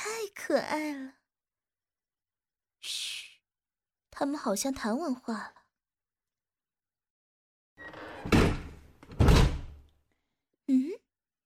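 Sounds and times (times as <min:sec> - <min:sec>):
speech: 0:00.3 - 0:01.2, 0:04.2 - 0:05.6
door being shut: 0:08.2 - 0:09.8.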